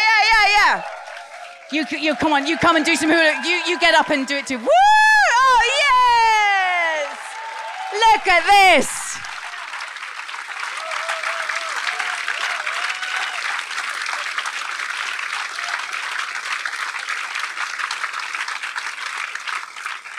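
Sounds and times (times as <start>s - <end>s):
audience applause: 0.0s - 20.1s
speech: 1.7s - 5.0s, 7.9s - 9.0s.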